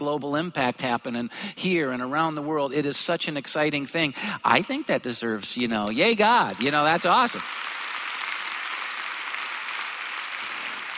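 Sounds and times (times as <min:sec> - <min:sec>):
speech: 0:00.0 - 0:07.8
audience clapping: 0:05.8 - 0:10.9.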